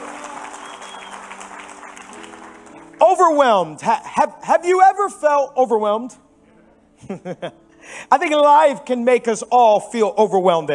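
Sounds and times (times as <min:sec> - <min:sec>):
church congregation applauding and cheering during worship service: 0:00.0 - 0:04.1
speech: 0:03.0 - 0:06.2, 0:07.0 - 0:10.7.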